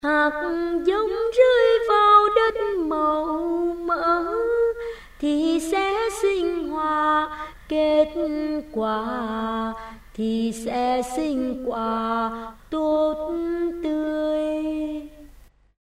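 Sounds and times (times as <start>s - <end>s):
soprano singing: 0.0s - 15.3s.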